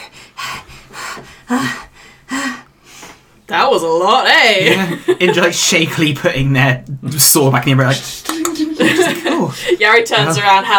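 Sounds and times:
person imitating panting of an exhausted character: 0.0 - 3.2
speech: 1.5 - 1.9, 3.6 - 10.7
laughter: 4.6 - 5.7, 8.2 - 10.6.

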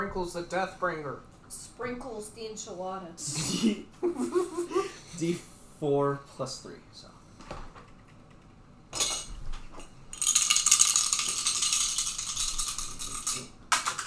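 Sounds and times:
speech: 0.1 - 7.1
dice rolled during a tabletop role-playing game: 10.1 - 14.0.

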